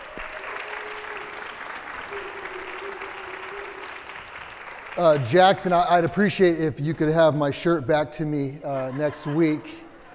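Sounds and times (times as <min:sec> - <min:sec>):
crowd whooping: 0:00.0 - 0:05.2
crowd applause: 0:00.0 - 0:06.6
laughter: 0:00.8 - 0:04.3, 0:08.6 - 0:10.1
speech: 0:05.0 - 0:09.8.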